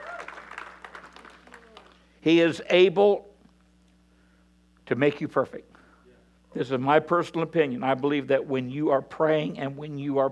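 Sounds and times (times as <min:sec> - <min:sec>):
audience hand clapping: 0:00.0 - 0:02.1
speech: 0:02.2 - 0:03.3, 0:04.9 - 0:05.7, 0:06.5 - 0:10.2.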